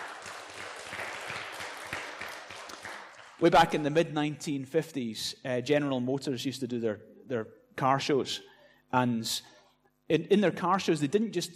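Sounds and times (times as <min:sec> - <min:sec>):
audience applauding: 0:00.0 - 0:03.7
speech: 0:03.4 - 0:11.5.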